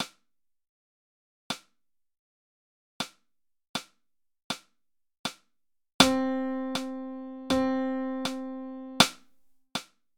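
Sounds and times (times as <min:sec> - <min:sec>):
musical half notes example: 0:06.0 - 0:09.2.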